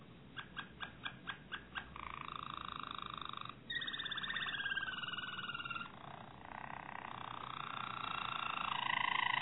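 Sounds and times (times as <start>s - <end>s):
Harz Roller canary song of rolls and trills: 0.0s - 9.4s.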